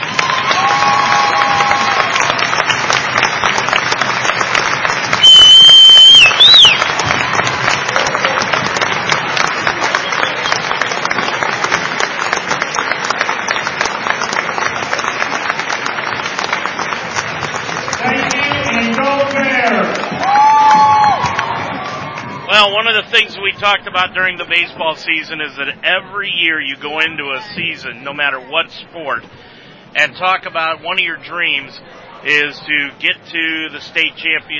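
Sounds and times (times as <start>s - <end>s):
cheers, whoops and whistles: 0.0s - 2.2s, 5.1s - 8.2s, 10.0s - 11.0s, 20.2s - 22.5s
crowd applause: 0.0s - 22.6s
speech: 23.3s - 34.5s.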